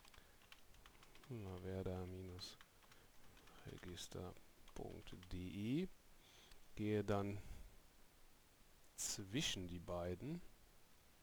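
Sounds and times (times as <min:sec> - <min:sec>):
computer keyboard keys clicking: 0:00.0 - 0:04.0
speech: 0:01.3 - 0:02.7, 0:03.6 - 0:06.0, 0:06.8 - 0:07.6, 0:09.0 - 0:10.5.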